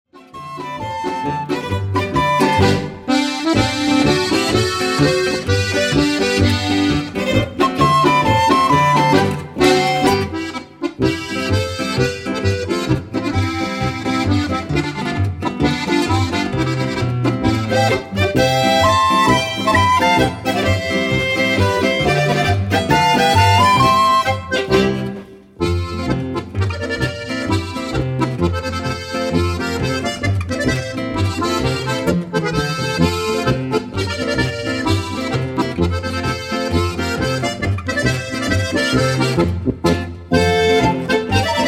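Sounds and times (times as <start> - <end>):
polka music: 0.1 - 41.6.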